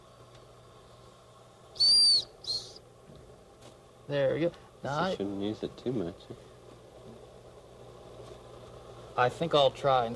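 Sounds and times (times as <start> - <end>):
whistle being blown: 1.8 - 2.8
speech: 4.1 - 6.5, 9.2 - 10.1.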